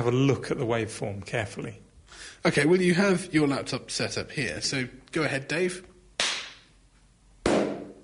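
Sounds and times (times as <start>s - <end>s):
speech: 0.0s - 5.9s
hand claps, sharp then cupped: 6.2s - 6.7s.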